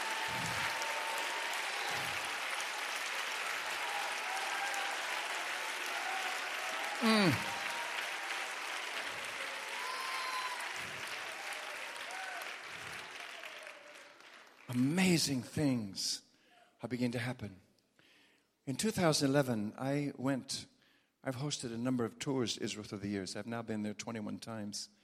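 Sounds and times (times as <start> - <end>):
person whooping: 0.0 - 2.3, 6.0 - 8.0, 9.7 - 11.0
audience clapping hands: 0.0 - 15.2
speech: 7.0 - 7.5, 14.8 - 17.6, 18.7 - 25.0.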